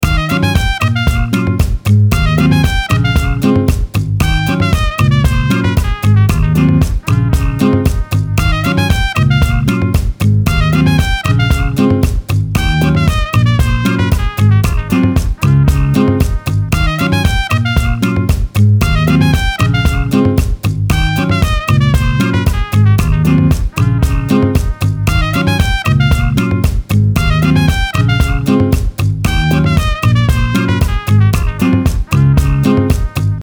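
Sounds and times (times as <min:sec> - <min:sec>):
soul jazz afro music: 0:00.0 - 0:33.4.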